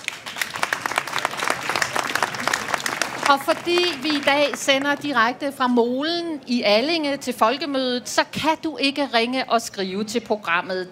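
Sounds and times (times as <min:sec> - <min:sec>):
audience applause: 0:00.0 - 0:05.1
speech: 0:03.3 - 0:10.9.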